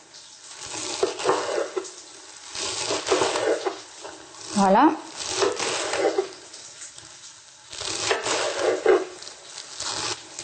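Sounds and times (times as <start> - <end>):
knife chopping a bunch of watercress with stems into coarse pieces: 0.6 - 1.9, 2.6 - 3.8, 4.4 - 6.4, 7.8 - 10.4
speech: 4.6 - 5.1.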